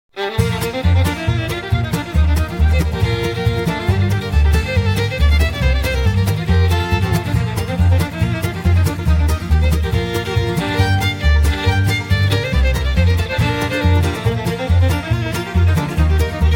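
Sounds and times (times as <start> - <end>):
blues music: 0.1 - 16.5.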